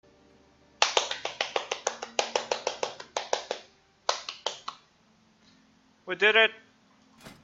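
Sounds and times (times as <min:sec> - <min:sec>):
applause: 0:00.8 - 0:03.6.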